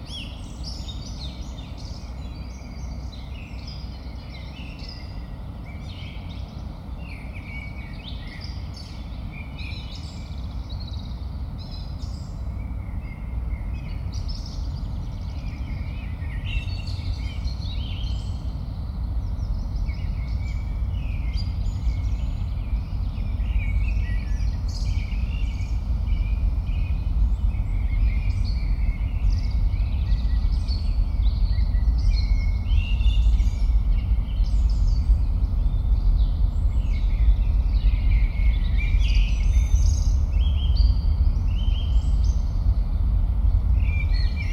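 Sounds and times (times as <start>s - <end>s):
small birds chirping and twittering: 0.0s - 44.5s
Keskusmetsä forest heavy low rumble: 17.0s - 44.5s.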